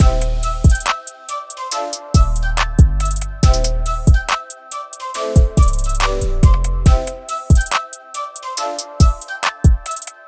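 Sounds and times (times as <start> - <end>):
music: 0.0 - 10.2.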